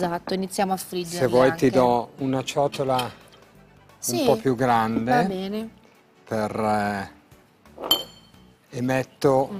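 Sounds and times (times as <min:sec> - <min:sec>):
speech: 0:00.0 - 0:03.2, 0:04.0 - 0:07.2, 0:07.8 - 0:08.1, 0:08.7 - 0:09.5
plate set down in a kitchen: 0:07.8 - 0:08.4.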